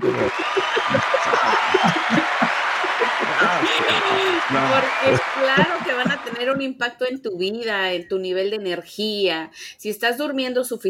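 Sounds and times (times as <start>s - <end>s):
crowd applauding: 0.0s - 6.6s
laughter: 0.0s - 6.6s
voices, shouts and chatter: 0.0s - 6.7s
speech: 4.5s - 10.8s.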